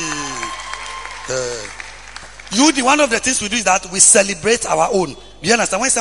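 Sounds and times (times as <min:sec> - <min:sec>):
church gathering clapping for a woman pastor: 0:00.0 - 0:03.9
speech: 0:01.3 - 0:01.8, 0:02.5 - 0:06.0.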